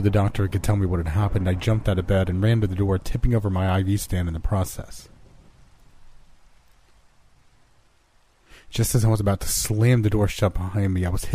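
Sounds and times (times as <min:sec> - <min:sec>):
speech: 0:00.0 - 0:05.1, 0:08.7 - 0:11.3
low rumble like thunder: 0:00.0 - 0:07.9
dense rain hissing: 0:00.0 - 0:11.3.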